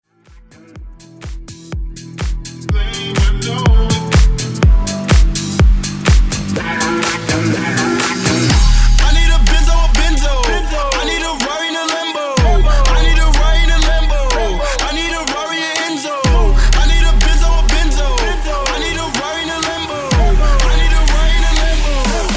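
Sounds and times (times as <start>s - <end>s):
house music: 0.1s - 22.3s.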